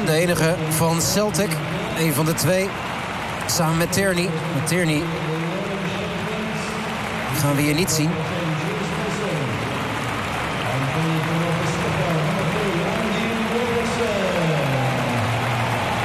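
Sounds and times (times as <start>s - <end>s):
stadium crowd applause: 0.0s - 16.0s
speech: 0.1s - 2.9s, 3.5s - 5.4s, 7.3s - 8.4s.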